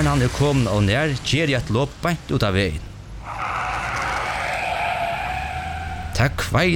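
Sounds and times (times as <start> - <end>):
speech: 0.0 - 2.9, 6.2 - 6.7
speeding car engine roaring: 3.1 - 6.6
car tyres screeching while skidding on a road: 3.2 - 6.4.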